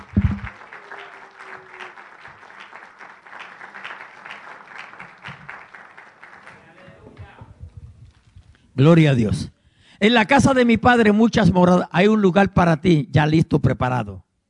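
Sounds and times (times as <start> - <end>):
audience applause: 0.0 - 7.4
speech: 8.8 - 14.2.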